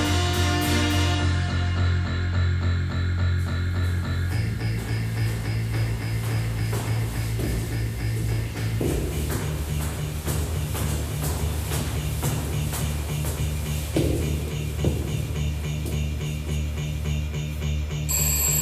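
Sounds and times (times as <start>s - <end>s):
steady low hum: 0.6s - 18.1s
doorbell ringing: 18.1s - 18.6s.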